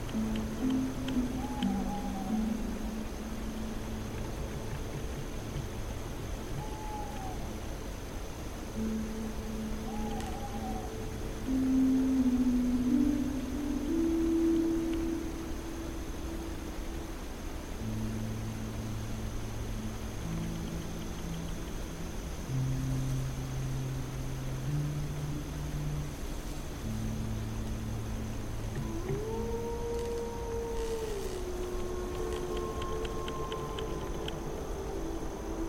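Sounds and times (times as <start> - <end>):
ambient fantasy music: 0.0 - 35.6
forest at night: 0.0 - 35.6.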